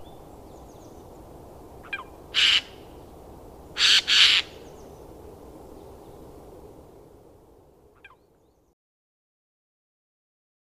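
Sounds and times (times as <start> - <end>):
Eurasian jay harsh downward-slurred calls: 2.0 - 2.8, 3.8 - 4.6.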